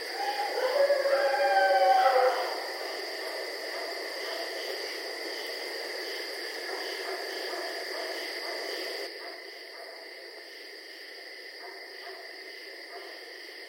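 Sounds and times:
coyotes howling: 0.0 - 2.9.

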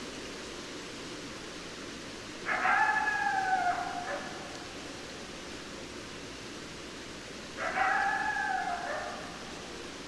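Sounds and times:
background hiss: 0.0 - 10.0
coyote howling: 2.4 - 4.6, 7.6 - 9.6.

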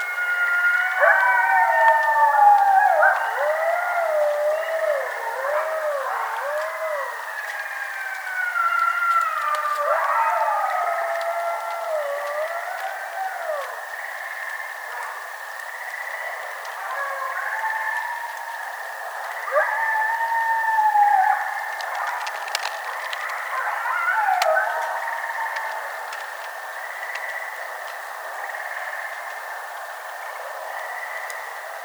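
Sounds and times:
coyote howling: 0.0 - 14.1, 16.7 - 27.7.

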